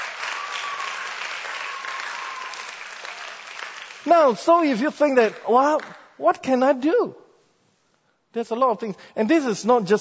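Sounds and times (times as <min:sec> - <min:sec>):
audience clapping: 0:00.0 - 0:06.1
speech: 0:04.0 - 0:07.2, 0:08.4 - 0:09.9.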